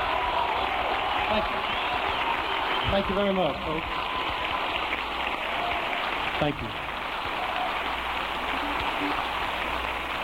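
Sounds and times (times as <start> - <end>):
big round of applause from a crowd: 0.0 - 10.2
speech: 1.3 - 1.8, 2.9 - 4.1, 6.4 - 6.9.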